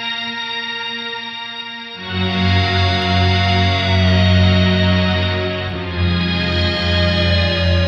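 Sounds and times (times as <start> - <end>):
Electro-Harmonix MEL9 Tape Replay Machine sounds: 2.1 - 7.8.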